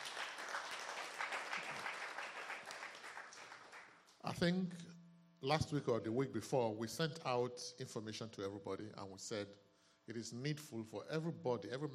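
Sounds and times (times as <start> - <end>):
audience clapping: 0.0 - 4.1
speech: 4.2 - 11.9.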